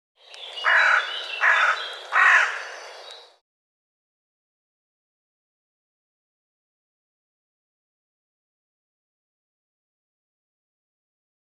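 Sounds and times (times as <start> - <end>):
bird harsh rasping calls: 0.6 - 3.0.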